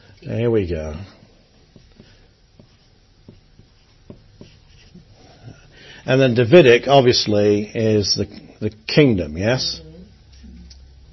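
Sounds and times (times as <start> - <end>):
steady hiss: 0.0 - 11.1
speech: 0.2 - 1.2, 6.1 - 9.8
handwriting scratching: 1.7 - 5.1.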